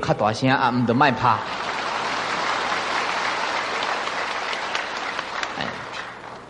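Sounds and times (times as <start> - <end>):
speech: 0.1 - 1.7
crowd clapping: 1.1 - 6.4.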